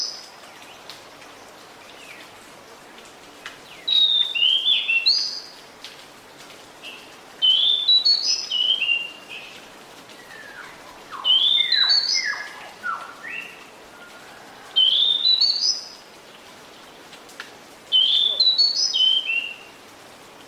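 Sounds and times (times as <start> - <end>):
background hiss: 0.0 - 20.4
Pied Bushchat song: 3.9 - 5.5, 7.4 - 9.2, 10.2 - 13.6, 14.8 - 15.8, 18.0 - 19.7.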